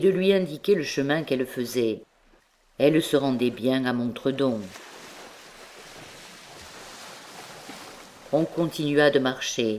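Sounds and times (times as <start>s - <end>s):
speech: 0.0s - 2.1s, 2.8s - 4.9s, 8.3s - 9.7s
sea waves breaking against rocks: 4.6s - 9.0s.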